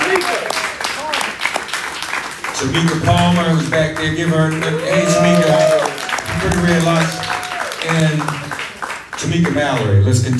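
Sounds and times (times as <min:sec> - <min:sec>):
crowd applause for the Until Freedom group: 0:00.0 - 0:10.3
speech: 0:02.6 - 0:08.5, 0:09.2 - 0:10.3.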